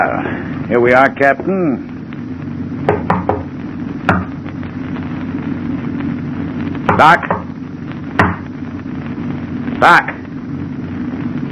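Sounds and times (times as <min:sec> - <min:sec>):
low hum: 0:00.0 - 0:11.4
speech: 0:00.7 - 0:01.9, 0:07.0 - 0:07.4, 0:09.8 - 0:10.1
knocking on a locked door: 0:02.9 - 0:03.5.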